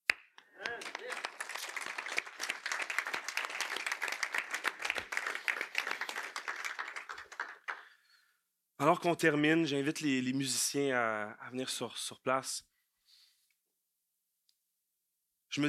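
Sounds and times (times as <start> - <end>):
congregation applauding in church at Christmas: 0.4 - 7.9
speech: 8.8 - 12.7.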